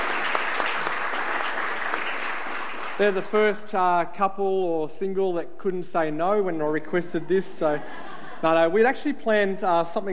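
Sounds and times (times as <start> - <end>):
audience applause welcoming a couple on stage: 0.0 - 3.3
speech: 3.0 - 10.1
laughter: 7.1 - 8.9.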